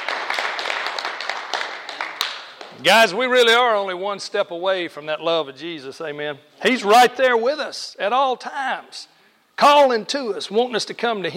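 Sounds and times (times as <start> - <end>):
congregation clapping during a church worship service: 0.0 - 3.5
speech: 2.8 - 11.3.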